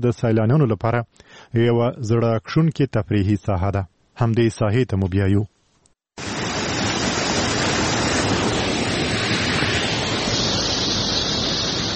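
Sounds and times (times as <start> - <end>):
speech: 0.0 - 5.5
flowing water of the Mazar Baba spring in Chora district, Uruzgan province: 6.2 - 11.9.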